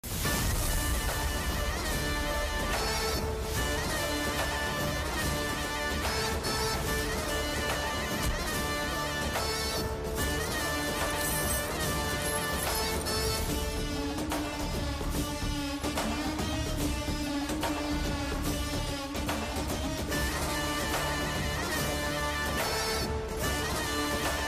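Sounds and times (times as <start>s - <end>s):
police station entry background music: 0.0s - 24.4s.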